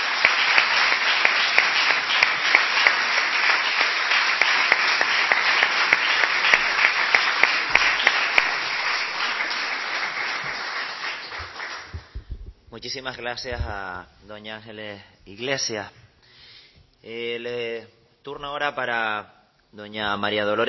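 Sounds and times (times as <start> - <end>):
parliament audience applauding: 0.0 - 12.2
speech: 12.9 - 16.0, 17.0 - 20.6.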